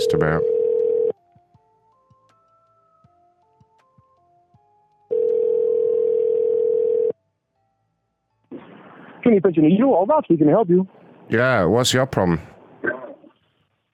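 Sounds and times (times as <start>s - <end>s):
dialing tones and clicks: 0.0s - 1.1s, 5.1s - 7.1s
speech: 0.1s - 0.5s, 9.3s - 12.5s
telephone dial tone: 0.4s - 1.2s, 5.1s - 7.1s.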